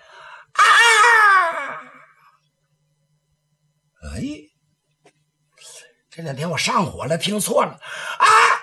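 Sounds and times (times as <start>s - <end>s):
person imitating a woman's scream: 0.6s - 2.2s, 8.2s - 8.6s
speech: 6.2s - 8.6s.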